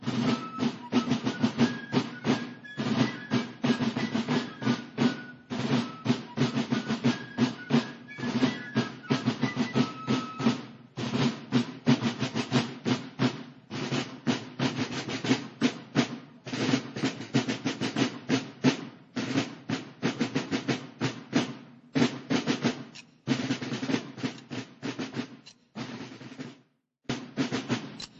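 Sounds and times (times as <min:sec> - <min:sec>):
fifes playing a march: 0:00.0 - 0:28.1.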